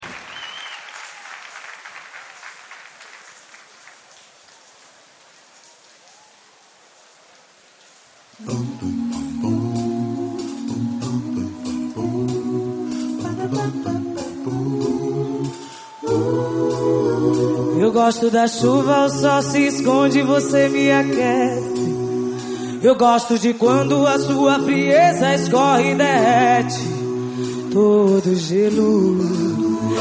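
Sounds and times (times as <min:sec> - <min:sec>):
live concert in Salvador: 0:08.4 - 0:29.9.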